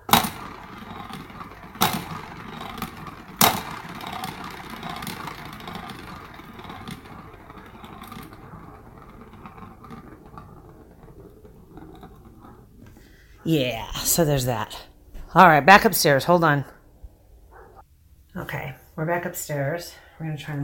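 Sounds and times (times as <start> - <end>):
small motorized cat toy whirring: 0.0 - 13.1
speech: 13.5 - 16.7, 19.1 - 20.6.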